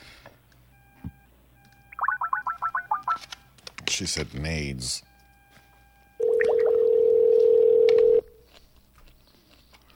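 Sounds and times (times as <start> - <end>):
telephone line tone: 1.9 - 3.2, 6.2 - 8.4
speech: 4.0 - 5.1.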